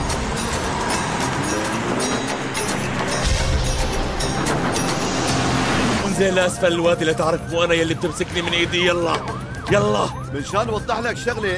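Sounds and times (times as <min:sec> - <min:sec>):
car engine roaring under heavy acceleration: 0:00.0 - 0:08.7
speech: 0:06.2 - 0:11.5.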